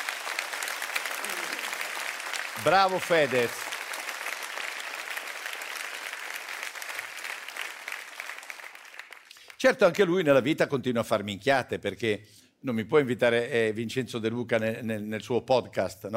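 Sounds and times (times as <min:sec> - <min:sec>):
applause: 0:00.0 - 0:10.1
speech: 0:02.6 - 0:03.7, 0:09.6 - 0:16.1.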